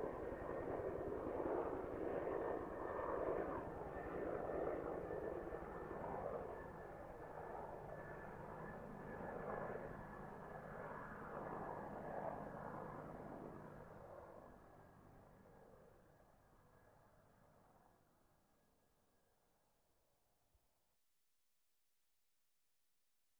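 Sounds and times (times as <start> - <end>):
helicopter flying in great distance: 0.0 - 18.2.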